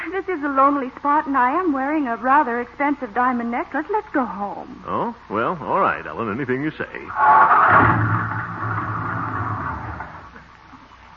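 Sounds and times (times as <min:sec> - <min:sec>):
speech: 0:00.1 - 0:08.5
car engine dying as the car runs out of gas: 0:07.1 - 0:10.4.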